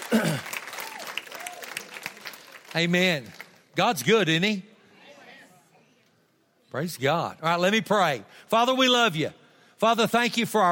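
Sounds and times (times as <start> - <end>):
hand clapping: 0.0 - 3.6
speech: 2.8 - 4.7, 6.7 - 10.7.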